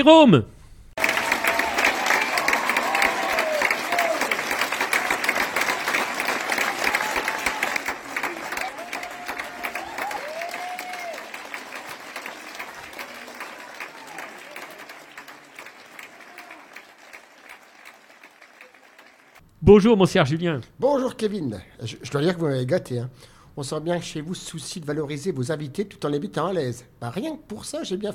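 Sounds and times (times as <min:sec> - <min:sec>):
speech: 0:00.0 - 0:00.5, 0:19.7 - 0:28.1
thunderous audience applause: 0:01.0 - 0:19.4.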